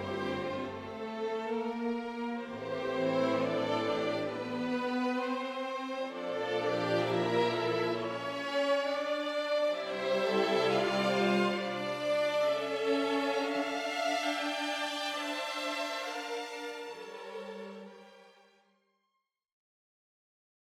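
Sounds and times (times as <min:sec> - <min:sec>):
cello: 0:00.0 - 0:18.7.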